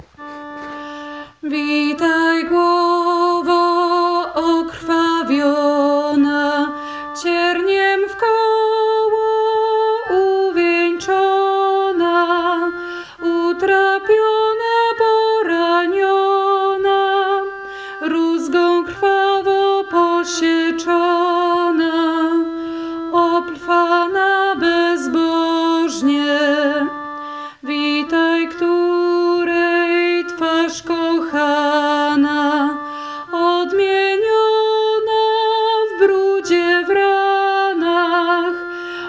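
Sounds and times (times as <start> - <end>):
soprano voice: 0.3 - 39.0.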